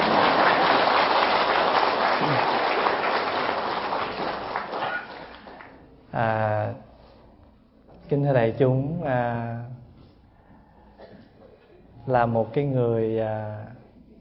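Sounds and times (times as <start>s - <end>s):
audience applause in a lecture hall in Vancouver, Canada: 0.0s - 5.8s
speech: 8.1s - 9.8s, 12.0s - 13.8s.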